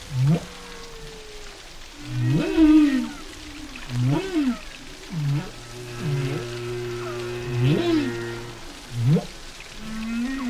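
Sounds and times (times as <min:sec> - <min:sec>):
faint constant watery hiss: 0:00.0 - 0:10.4
whale song with low swooping calls: 0:00.0 - 0:10.4.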